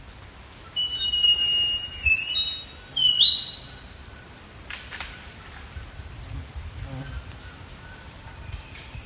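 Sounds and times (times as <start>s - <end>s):
thrush-like schiffornis singing slurred whistles in the eastern lowlands of South America: 0.7s - 3.9s.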